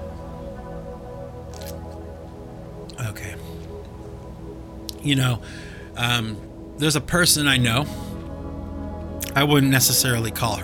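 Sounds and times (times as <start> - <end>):
person sipping Maxwell House coffee: 1.5 - 1.9
speech: 5.0 - 8.1, 9.4 - 10.6.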